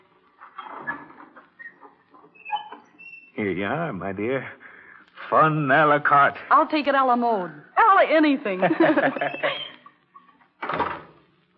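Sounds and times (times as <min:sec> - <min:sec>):
door rattling and scraping as it moves: 0:00.3 - 0:03.4, 0:10.5 - 0:11.2
speech: 0:03.4 - 0:04.6, 0:05.3 - 0:09.6
laughter: 0:08.5 - 0:10.0
heavy door slamming shut with a muffled thump: 0:10.6 - 0:11.2.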